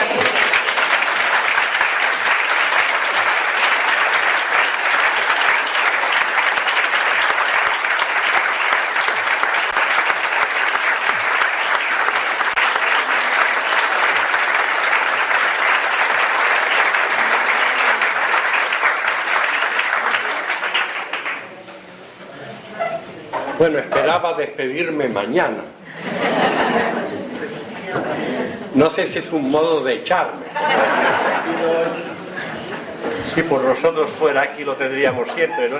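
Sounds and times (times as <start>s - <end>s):
large audience applauding: 0.0s - 21.5s
speech: 24.2s - 27.0s, 28.8s - 32.1s, 33.2s - 35.7s
laughter: 25.9s - 28.7s, 30.4s - 33.3s.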